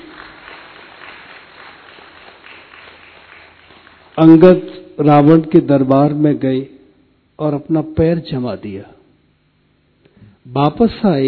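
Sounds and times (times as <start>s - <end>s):
audience applause: 0.0s - 4.3s
speech: 4.2s - 6.7s, 7.4s - 9.0s, 10.4s - 11.2s.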